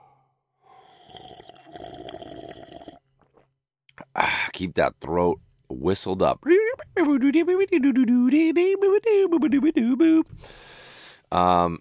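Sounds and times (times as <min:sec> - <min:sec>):
person sipping coffee: 0:00.8 - 0:03.5
speech: 0:04.6 - 0:11.7.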